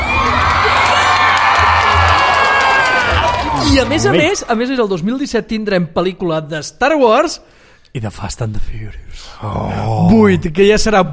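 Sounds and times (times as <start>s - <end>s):
applause and cheering from a claque: 0.0s - 4.6s
speech: 3.8s - 11.1s.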